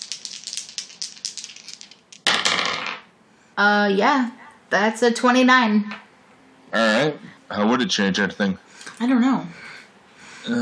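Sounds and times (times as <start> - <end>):
dice rolling: 0.0 - 3.1
speech: 3.6 - 6.0, 6.7 - 9.6, 10.4 - 10.6.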